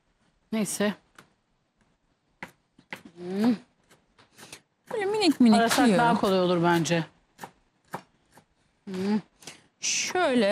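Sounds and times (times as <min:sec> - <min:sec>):
speech: 0:00.5 - 0:01.0, 0:03.2 - 0:03.7, 0:04.9 - 0:07.1, 0:08.9 - 0:10.5
knife finely chopping parsley: 0:02.4 - 0:08.5.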